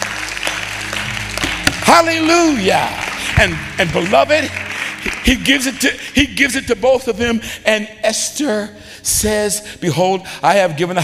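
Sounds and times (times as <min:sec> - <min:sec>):
audience clapping hands: 0:00.0 - 0:07.4
speech: 0:01.9 - 0:11.0.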